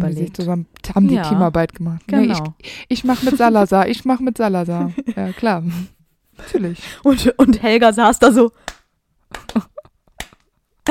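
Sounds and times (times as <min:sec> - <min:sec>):
speech: 0:00.1 - 0:08.8, 0:09.4 - 0:09.7
laughter: 0:04.7 - 0:05.8
rhythmic hand clapping: 0:08.6 - 0:10.9.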